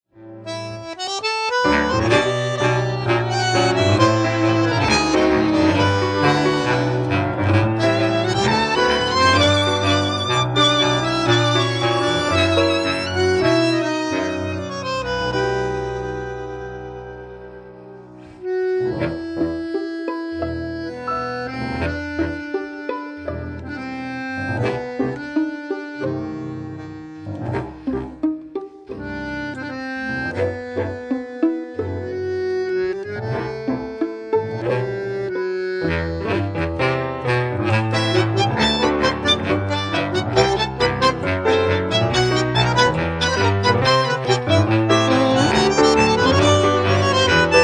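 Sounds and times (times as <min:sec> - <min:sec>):
gypsy tango music: 0:00.2 - 0:47.6.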